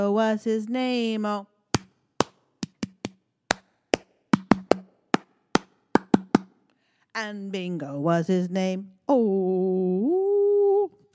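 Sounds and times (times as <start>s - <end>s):
speech: 0.0s - 1.5s, 7.2s - 10.2s
hand clapping along to song: 1.8s - 6.5s.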